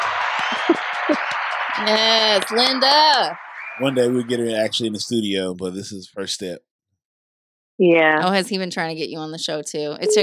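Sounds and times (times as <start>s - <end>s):
small group applauding: 0.0s - 5.1s
laughter: 0.4s - 2.2s, 3.8s - 6.6s
speech: 1.8s - 6.7s, 7.8s - 10.2s.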